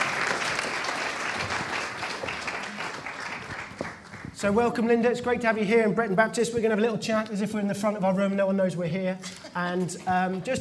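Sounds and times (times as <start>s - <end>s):
audience applause: 0.0s - 4.4s
speech: 4.4s - 10.5s.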